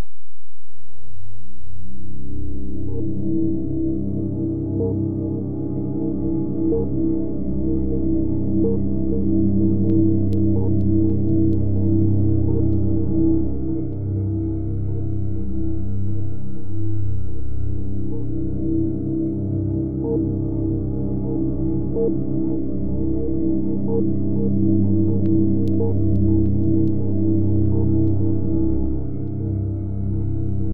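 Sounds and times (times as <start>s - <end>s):
ambience: 0.0s - 30.7s.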